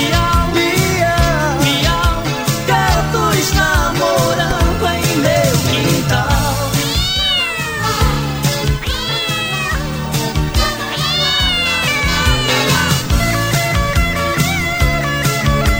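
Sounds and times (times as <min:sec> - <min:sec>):
cat meowing: 0:00.0 - 0:15.7.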